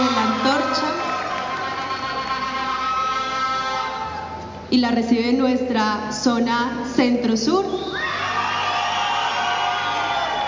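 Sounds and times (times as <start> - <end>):
crowd applause: 0.0 - 4.0, 8.3 - 10.4
crowd whooping: 0.0 - 4.4, 7.7 - 10.4
speech: 4.7 - 8.0.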